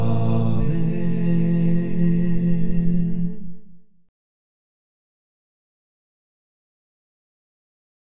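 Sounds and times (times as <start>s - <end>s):
a cappella hymn: 0.0s - 4.1s.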